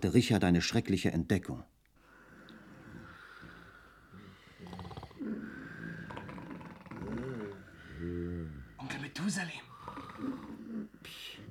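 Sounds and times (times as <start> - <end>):
speech: 0.0 - 1.8, 8.9 - 11.3
men snoring in competition in a ship's cabin: 2.5 - 8.8, 9.7 - 11.4.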